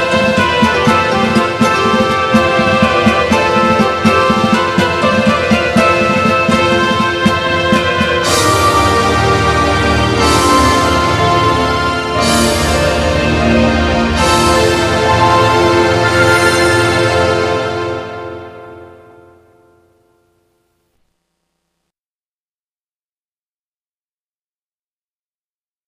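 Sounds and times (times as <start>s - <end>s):
orchestral ending: 0.0s - 19.7s.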